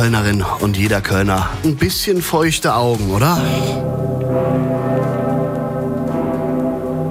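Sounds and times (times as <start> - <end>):
speech: 0.0 - 4.0
huge deep cathedral bell tolling: 3.4 - 7.0.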